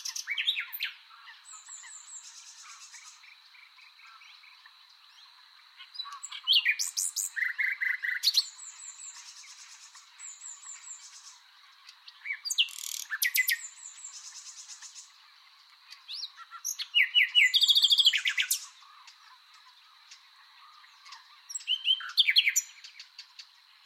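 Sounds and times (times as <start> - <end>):
common nightingale song: 0.0 - 23.8.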